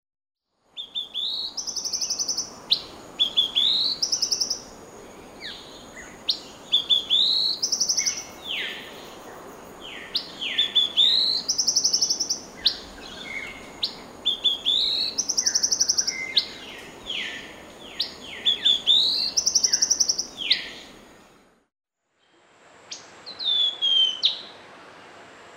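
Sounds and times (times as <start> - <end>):
yellow-breasted boatbill call phrases in Papua New Guinea: 0.8 - 9.0, 9.9 - 21.4, 22.9 - 24.6.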